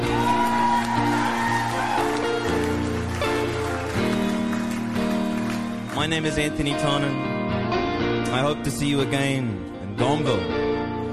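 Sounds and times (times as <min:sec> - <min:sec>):
audience whoops: 0:00.0 - 0:04.4
audience applause: 0:00.0 - 0:06.7
sustained music chords: 0:00.0 - 0:11.1
speech: 0:06.1 - 0:07.3, 0:08.3 - 0:10.6.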